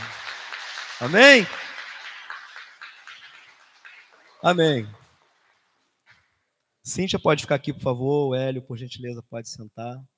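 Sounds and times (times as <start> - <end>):
audience applauding: 0.0 - 4.9
speech: 1.0 - 1.6, 4.4 - 5.0, 6.8 - 10.1.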